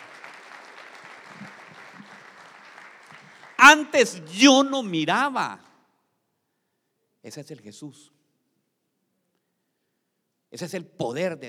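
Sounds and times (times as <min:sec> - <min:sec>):
audience applause: 0:00.0 - 0:04.9
speech: 0:03.6 - 0:05.6, 0:07.3 - 0:08.2, 0:10.5 - 0:11.4.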